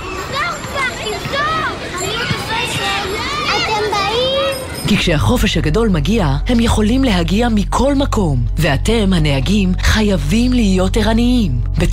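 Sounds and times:
children playing and shouting: 0.0s - 5.1s
speech: 4.9s - 11.9s.

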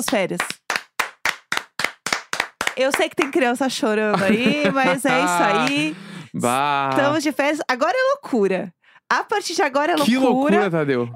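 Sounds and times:
speech: 0.0s - 0.6s, 2.8s - 11.1s
hands clapping: 0.0s - 3.5s, 4.2s - 7.2s, 10.0s - 10.7s
laughter: 4.1s - 7.3s, 10.0s - 11.1s.

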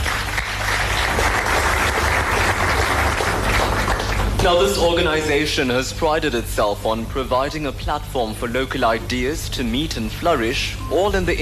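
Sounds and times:
audience applause: 0.0s - 4.9s
speech: 4.4s - 11.4s.

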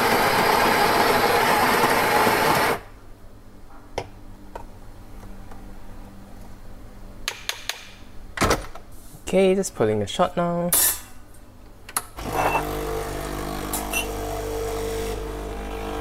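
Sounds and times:
coffee grinder grinding coffee beans: 0.0s - 2.9s, 12.2s - 15.9s
speech: 9.3s - 11.0s.

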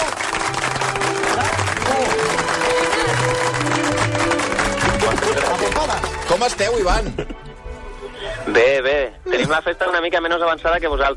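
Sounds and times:
audience applause: 0.0s - 7.0s
speech: 6.4s - 7.4s, 8.5s - 11.1s.

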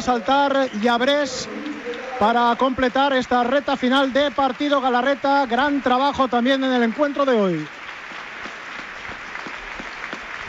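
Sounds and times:
speech: 0.0s - 1.6s, 2.2s - 7.8s
stadium crowd at a Real Mallorca match clapping in ovation: 0.0s - 10.4s.

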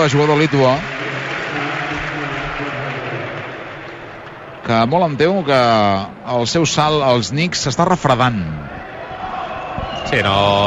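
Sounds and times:
speech: 0.0s - 1.0s, 4.6s - 8.7s, 10.0s - 10.6s
crowd applauding at a basketball game: 0.0s - 5.0s.

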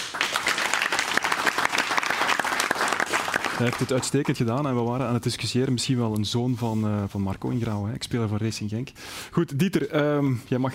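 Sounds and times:
audience applause: 0.0s - 4.8s
speech: 3.6s - 10.7s.

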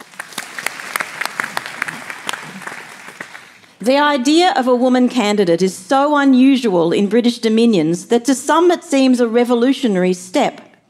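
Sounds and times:
crowd applause: 0.0s - 3.7s
speech: 3.8s - 10.6s.

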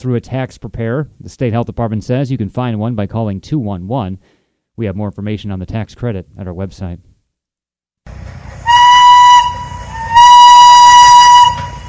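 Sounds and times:
speech: 0.0s - 7.1s, 8.0s - 8.4s
steam locomotive rumbling: 8.1s - 11.8s
steam locomotive whistle blasts: 8.6s - 11.8s.

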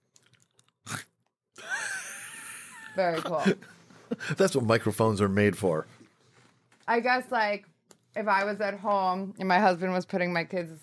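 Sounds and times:
gluten-free chocolate cupcake topped with quinoa crunch brittle being chewed: 0.0s - 1.3s
speech: 3.0s - 6.0s, 6.9s - 10.8s.

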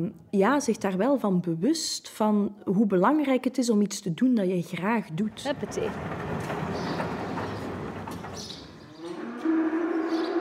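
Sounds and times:
speech: 0.0s - 6.6s
rumbling outdoor background: 5.2s - 10.3s
cows mooing: 8.8s - 10.3s.

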